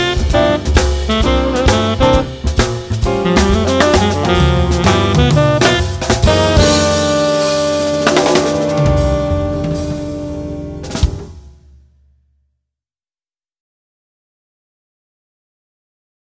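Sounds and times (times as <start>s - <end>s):
jazz blues with tenor sax soloist: 0.0s - 11.6s.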